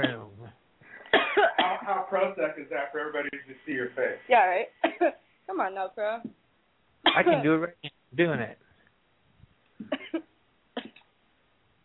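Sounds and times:
faint hiss: 0:00.0 - 0:11.8
harsh coughs: 0:01.0 - 0:02.1, 0:04.8 - 0:05.2, 0:07.1 - 0:07.4, 0:10.8 - 0:11.0
speech: 0:02.1 - 0:06.4, 0:07.1 - 0:08.6.

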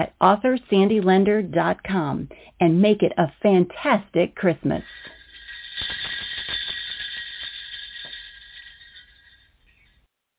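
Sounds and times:
speech: 0:00.0 - 0:05.1
sleigh bells jingling: 0:04.8 - 0:10.0.

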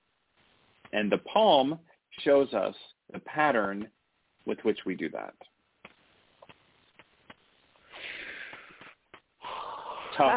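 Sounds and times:
speech: 0:00.9 - 0:05.5, 0:10.2 - 0:10.3
deep spontaneous inhalation: 0:07.8 - 0:10.2.

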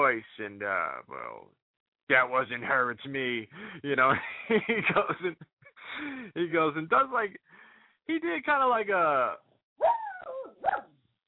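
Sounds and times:
speech: 0:00.1 - 0:10.0
laughter: 0:03.8 - 0:06.1
dog barking: 0:09.8 - 0:10.9.

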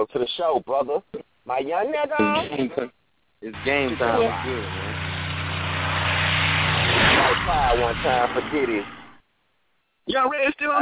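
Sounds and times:
speech: 0:00.0 - 0:04.9, 0:07.2 - 0:09.0, 0:10.1 - 0:10.8
Jaguar car driving with engine drone: 0:03.6 - 0:09.2.

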